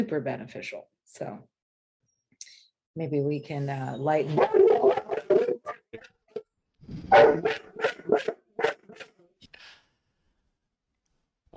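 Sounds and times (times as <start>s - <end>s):
speech: 0.0s - 1.5s, 2.4s - 5.0s
dog barking: 4.3s - 5.7s, 7.1s - 9.1s.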